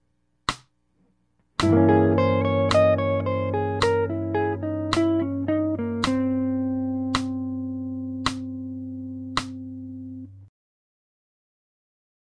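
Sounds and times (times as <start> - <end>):
jazz music: 1.6 - 10.3.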